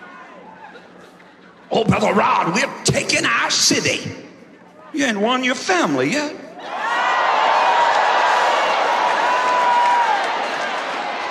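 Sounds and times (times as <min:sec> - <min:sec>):
crowd shouting and cheering: 0:00.0 - 0:00.9, 0:06.5 - 0:11.3
speech: 0:01.7 - 0:04.3, 0:04.9 - 0:06.4
high whoops: 0:06.7 - 0:11.3.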